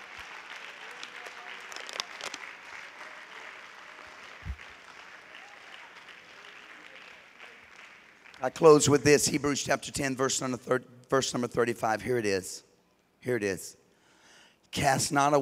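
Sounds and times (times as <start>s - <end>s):
audience clapping hands: 0.0s - 9.0s
speech: 8.4s - 13.8s, 14.7s - 15.3s.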